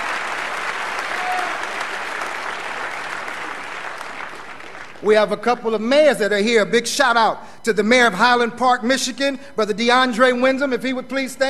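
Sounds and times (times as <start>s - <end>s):
audience applause: 0.0s - 5.1s
speech: 5.0s - 11.4s.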